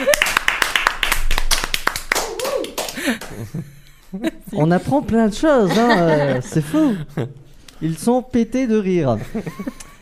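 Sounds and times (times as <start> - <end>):
audience applause: 0.0 - 3.4
laughter: 3.0 - 7.4, 9.1 - 9.9
speech: 3.1 - 9.9.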